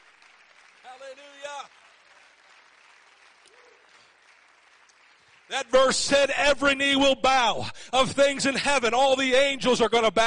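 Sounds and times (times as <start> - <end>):
crowd clapping hands: 0.0 - 6.3
speech: 0.9 - 1.8, 5.5 - 10.2.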